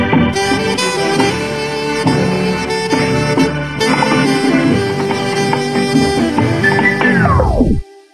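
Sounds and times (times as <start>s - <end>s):
saxophone instrumental ringtone: 0.4s - 8.1s.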